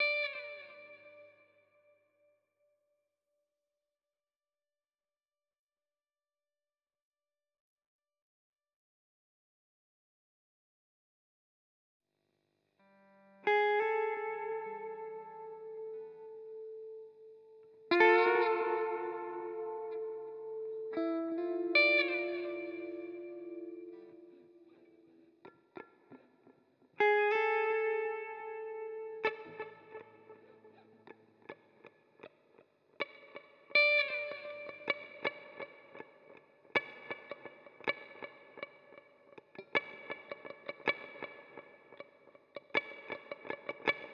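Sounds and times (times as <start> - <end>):
guitar: 0.0 - 2.1, 12.8 - 44.1.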